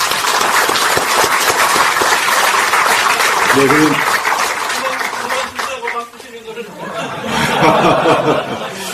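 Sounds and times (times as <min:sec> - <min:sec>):
applause: 0:00.0 - 0:06.4
speech: 0:03.6 - 0:04.1
laughter: 0:06.5 - 0:08.9.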